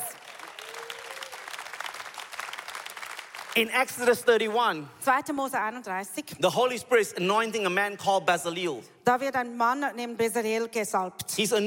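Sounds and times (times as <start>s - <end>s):
audience clapping: 0.0s - 4.4s
speech: 3.6s - 11.6s.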